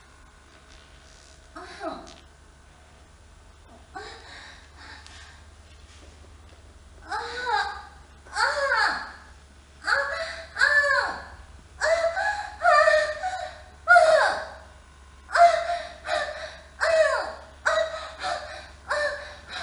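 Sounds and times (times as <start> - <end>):
young wife moaning wildly: 1.6 - 2.2, 3.9 - 5.1, 7.0 - 14.6, 15.3 - 19.6.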